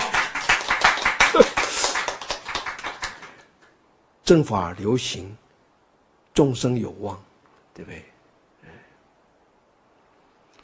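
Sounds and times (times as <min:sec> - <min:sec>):
audience clapping hands: 0:00.0 - 0:03.5
speech: 0:04.3 - 0:05.4, 0:06.4 - 0:08.1.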